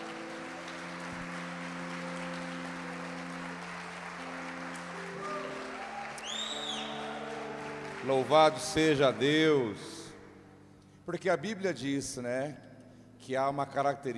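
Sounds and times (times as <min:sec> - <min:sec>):
audience applause: 0:00.0 - 0:10.1
speech: 0:08.0 - 0:10.0, 0:11.1 - 0:12.6, 0:13.2 - 0:14.1.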